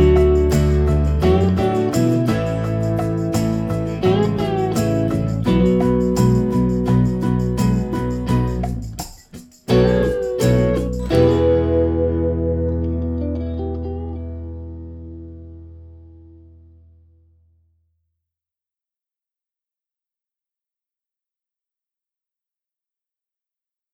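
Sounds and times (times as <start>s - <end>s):
backing track music: 0.0s - 16.0s.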